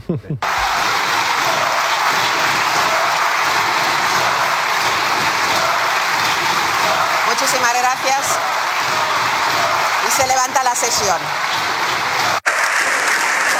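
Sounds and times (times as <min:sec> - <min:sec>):
parliament members laughing: 0:00.0 - 0:05.9
speech: 0:00.1 - 0:00.8, 0:07.8 - 0:08.7, 0:10.2 - 0:11.8
parliament members applauding: 0:00.4 - 0:13.5.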